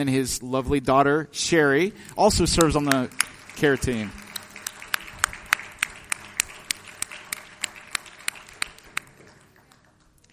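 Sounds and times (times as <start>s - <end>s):
speech: 0.0s - 4.2s
audience applause: 2.2s - 10.3s.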